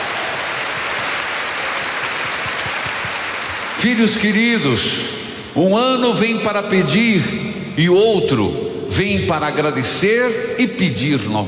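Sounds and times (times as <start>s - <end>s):
audience applause: 0.0s - 4.3s
speech: 3.8s - 11.4s.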